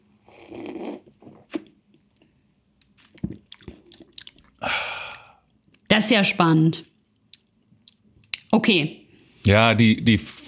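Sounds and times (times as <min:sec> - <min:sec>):
big sip of a cloudy golden sparkling drink: 0:00.2 - 0:01.8, 0:02.9 - 0:05.6
fizzy gulp: 0:03.0 - 0:05.4
speech: 0:06.0 - 0:06.9, 0:08.6 - 0:10.4.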